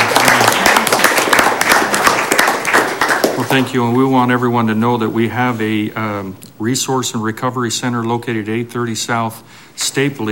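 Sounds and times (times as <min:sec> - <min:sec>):
audience applauding: 0:00.0 - 0:03.8
speech: 0:03.6 - 0:10.3.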